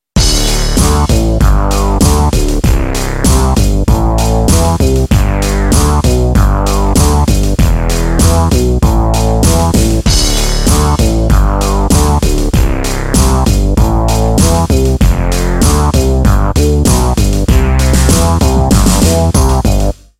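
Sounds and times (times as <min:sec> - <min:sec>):
bass: 0:00.0 - 0:20.1.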